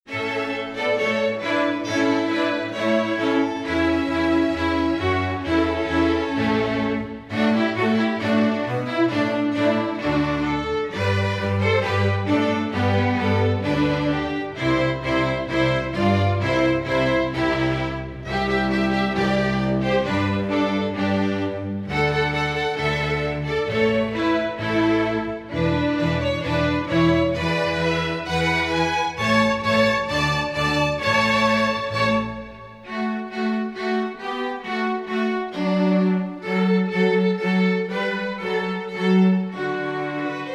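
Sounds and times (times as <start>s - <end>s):
holiday fanfare by string orchestra: 0.1s - 40.5s.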